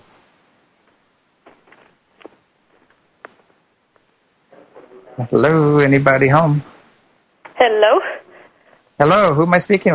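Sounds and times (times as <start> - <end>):
footsteps: 0.8 - 4.9
speech: 5.2 - 6.7, 9.0 - 9.9.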